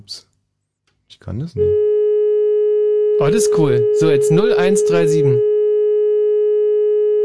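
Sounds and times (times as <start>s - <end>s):
speech: 0.0s - 0.3s, 1.1s - 1.9s, 3.2s - 5.5s
steady telephone line beep tone: 1.6s - 7.2s.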